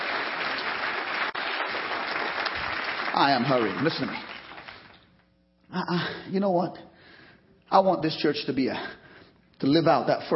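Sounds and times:
audience clapping hands: 0.0 - 5.2
speech: 3.2 - 4.3, 5.7 - 6.9, 7.7 - 9.0, 9.6 - 10.3.

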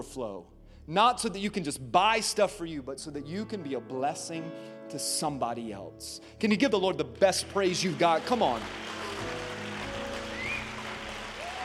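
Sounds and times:
speech: 0.0 - 9.4
audience applause: 7.7 - 11.6.

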